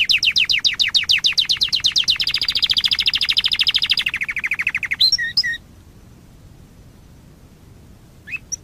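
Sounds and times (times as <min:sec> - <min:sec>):
Waterslager canary song: 0:00.0 - 0:05.7, 0:08.2 - 0:08.6.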